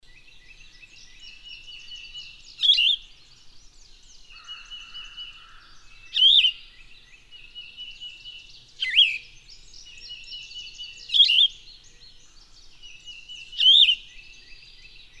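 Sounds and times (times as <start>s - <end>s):
bird song whistled phrases: 0.1s - 3.4s, 6.0s - 12.2s, 12.8s - 15.1s.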